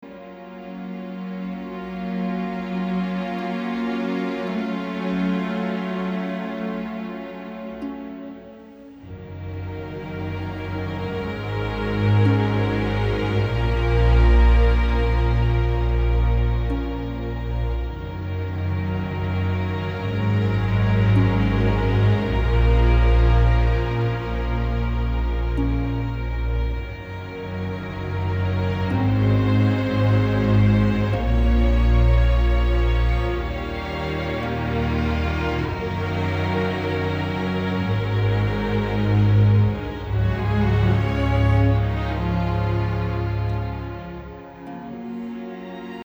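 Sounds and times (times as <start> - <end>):
orchestra: 0.0 - 46.0.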